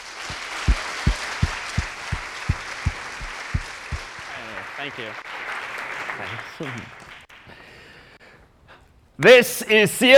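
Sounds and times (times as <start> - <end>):
audience applause: 0.0 - 7.4
speech: 4.8 - 5.3, 6.2 - 7.0, 9.2 - 10.1.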